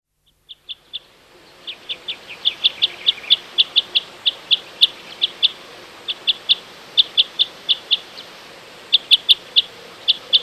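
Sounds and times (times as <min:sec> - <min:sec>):
common crossbill sharp high kip calls: 0:00.2 - 0:10.4.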